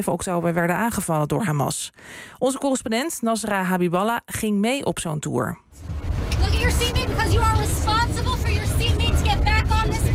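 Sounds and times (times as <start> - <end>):
speech: 0.0 - 8.6, 9.3 - 10.1
moving bus engine rumble on way to kibbutz Nir Oz: 5.8 - 10.1.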